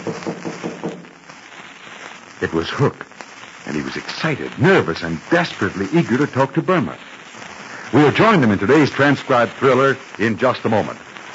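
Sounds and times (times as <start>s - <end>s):
knock on the back door of a wooden cabin: 0.0s - 1.0s
speech: 2.4s - 3.1s, 3.7s - 7.1s, 7.9s - 11.1s.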